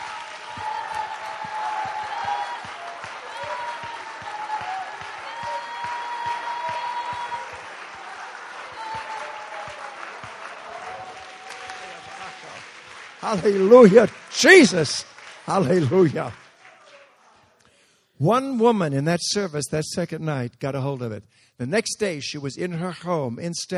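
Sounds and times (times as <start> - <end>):
audience clapping and cheering: 0.0 - 17.6
speech: 13.3 - 16.4, 18.2 - 23.7.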